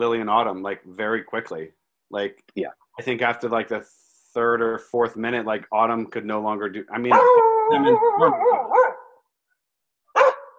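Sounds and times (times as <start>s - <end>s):
speech: 0.0s - 8.7s
dog barking: 7.1s - 9.2s, 10.1s - 10.5s.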